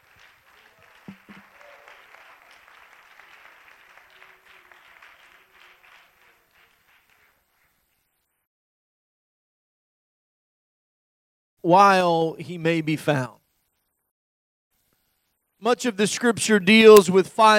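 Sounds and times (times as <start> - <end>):
audience clapping hands: 0.0 - 8.0
speech: 11.6 - 13.4, 15.6 - 17.5.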